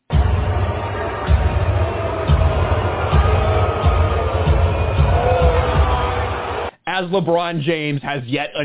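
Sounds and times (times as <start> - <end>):
arena crowd booing the Lakers: 0.1 - 6.7
speech: 7.0 - 8.6.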